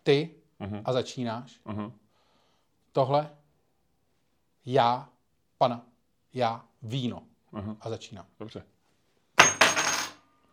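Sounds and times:
speech: 0:00.0 - 0:02.0, 0:02.9 - 0:03.4, 0:04.6 - 0:08.7
coin landing on a hard surface: 0:09.4 - 0:10.2.

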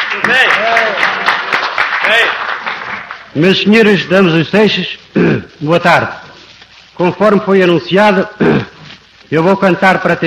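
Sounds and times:
applause: 0:00.0 - 0:03.7
speech: 0:02.1 - 0:02.5, 0:03.4 - 0:06.2, 0:07.0 - 0:08.6, 0:09.3 - 0:10.2.

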